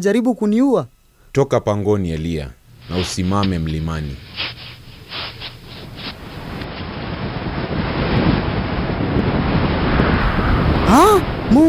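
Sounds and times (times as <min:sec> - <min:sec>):
speech: 0:00.0 - 0:04.5
roaring wind splitting a mountain, dramatic sound effect: 0:02.5 - 0:11.6.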